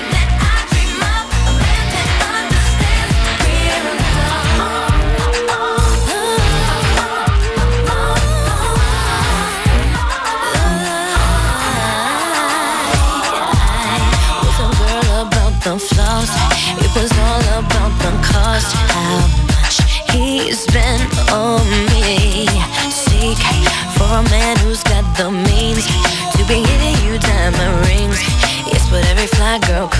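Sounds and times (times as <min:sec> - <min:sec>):
hip hop music: 0:00.0 - 0:29.9.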